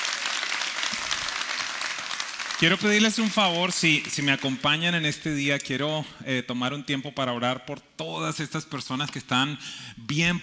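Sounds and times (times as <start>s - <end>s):
audience applause: 0.0s - 4.6s
speech: 2.6s - 10.4s.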